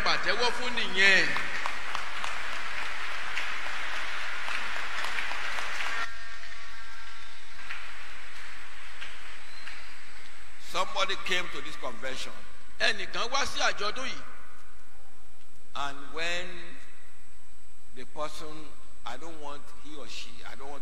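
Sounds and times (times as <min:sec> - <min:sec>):
audience clapping: 0:00.0 - 0:10.4
speech: 0:00.3 - 0:01.4, 0:11.1 - 0:14.4, 0:15.8 - 0:16.7, 0:18.0 - 0:20.8.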